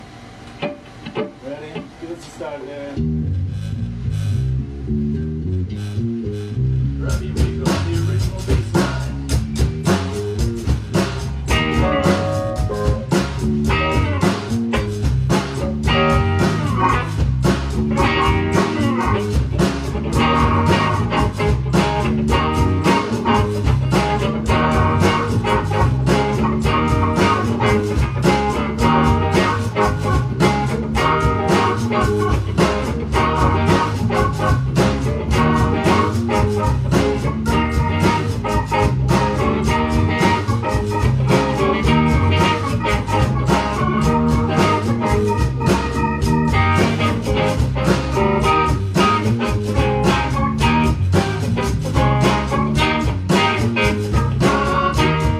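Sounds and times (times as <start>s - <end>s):
funky song: 3.0s - 55.3s.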